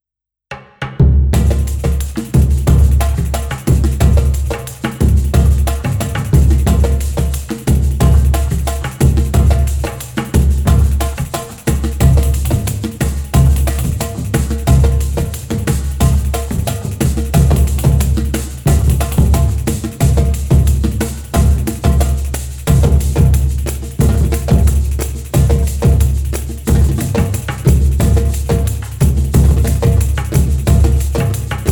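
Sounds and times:
surdo drum: 0.5 - 31.7.

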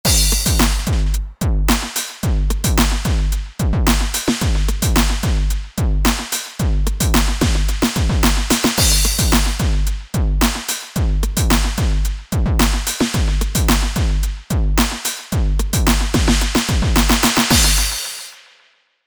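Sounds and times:
D909 drum machine multi-output: 0.0 - 18.4.

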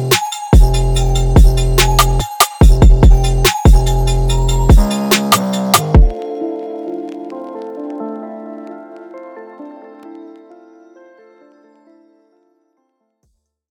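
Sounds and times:
tectonic trap music: 0.0 - 6.2.

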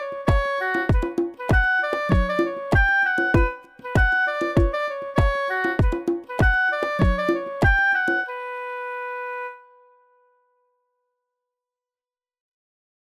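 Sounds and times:
oboe: 0.0 - 10.1.

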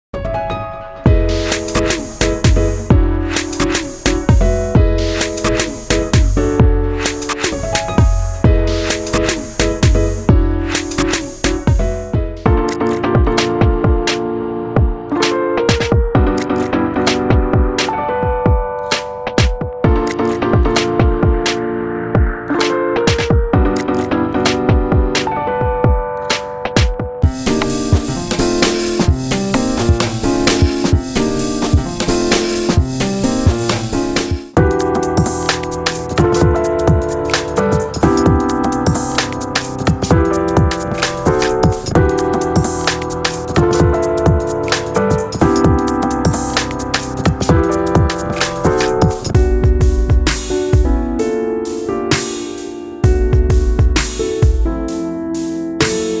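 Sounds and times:
acid jazz neo soul music: 1.1 - 25.5, 26.2 - 56.1.

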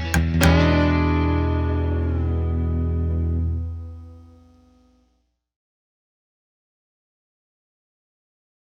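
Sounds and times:
mysterious bass: 0.0 - 4.8.

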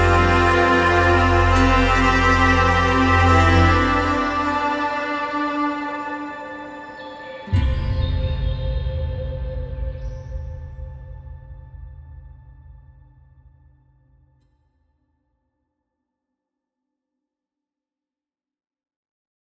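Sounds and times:
ambient music: 0.0 - 11.3.

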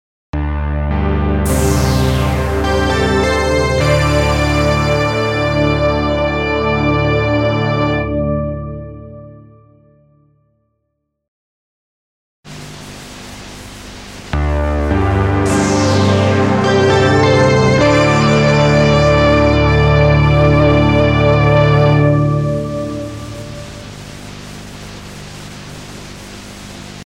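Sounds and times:
80s video ident jingle: 0.4 - 8.4, 14.4 - 24.2.

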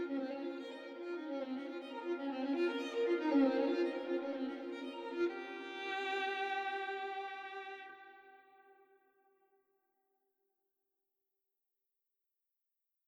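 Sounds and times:
violin: 0.0 - 8.8.

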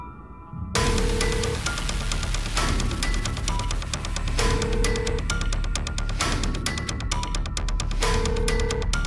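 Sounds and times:
aggressive drum kit: 0.8 - 9.0.

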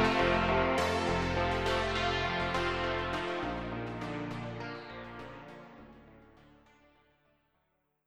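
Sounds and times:
electric piano voice pad: 0.0 - 5.5.

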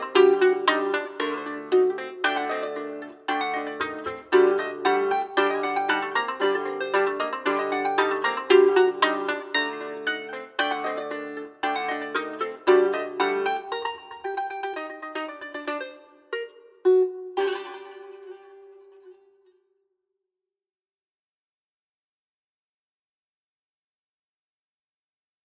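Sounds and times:
dry strumstick: 0.0 - 19.2.

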